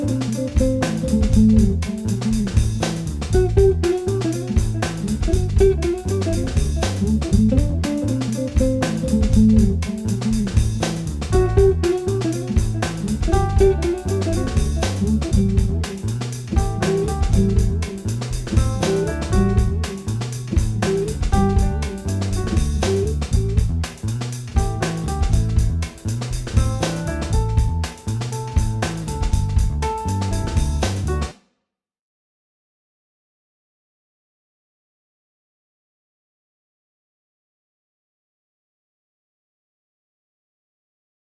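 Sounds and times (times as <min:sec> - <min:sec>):
music loop: 0:00.0 - 0:24.0, 0:24.6 - 0:31.2.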